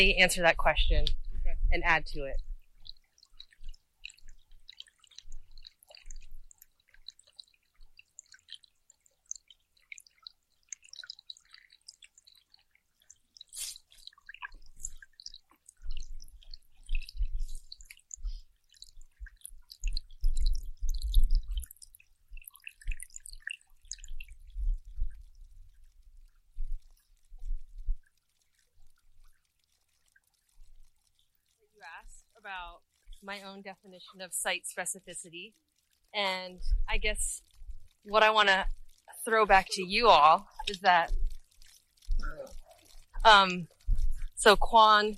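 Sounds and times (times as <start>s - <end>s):
speech: 0.0s - 2.5s, 32.5s - 41.2s, 43.2s - 43.8s, 44.4s - 45.1s
water sounds: 0.0s - 45.1s.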